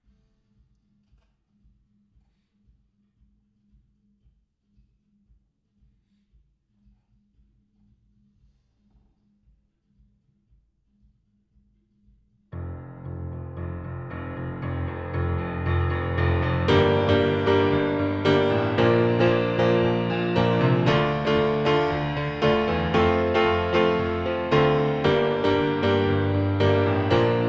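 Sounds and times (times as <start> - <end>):
piano: 12.6 - 27.4.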